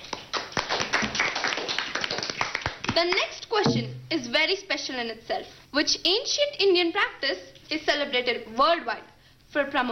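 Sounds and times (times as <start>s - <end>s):
applause for a quiz contestant in an Indian general knowledge quiz: 0.0s - 3.3s
speech: 3.0s - 9.9s.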